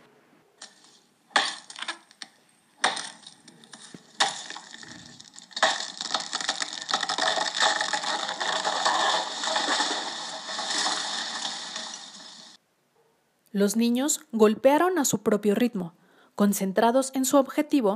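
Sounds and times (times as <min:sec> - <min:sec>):
tree trunk creaking and splitting apart: 0:01.3 - 0:12.6
speech: 0:13.6 - 0:17.9.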